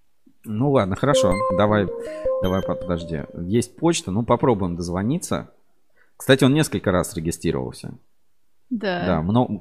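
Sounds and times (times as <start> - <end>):
speech: 0.5 - 5.6, 6.2 - 8.1, 8.7 - 9.5
answering machine beep: 1.1 - 3.5.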